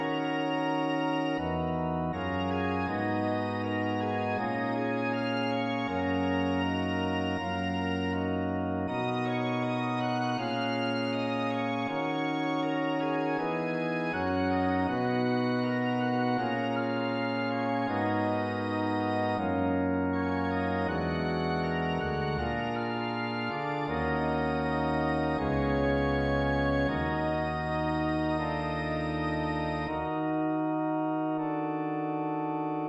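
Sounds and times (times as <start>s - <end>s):
game music organ loop: 0.0s - 32.8s.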